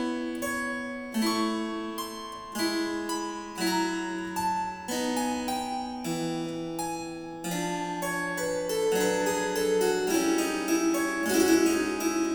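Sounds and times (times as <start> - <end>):
harpsichord: 0.0 - 12.3.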